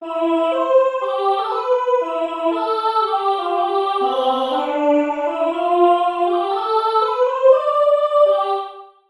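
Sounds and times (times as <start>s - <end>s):
national anthem: 0.0s - 9.0s.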